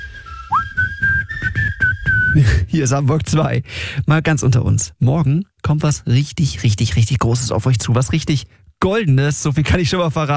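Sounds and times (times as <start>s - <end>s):
person whistling a short bright tune: 0.0s - 2.6s
speech: 2.3s - 10.3s.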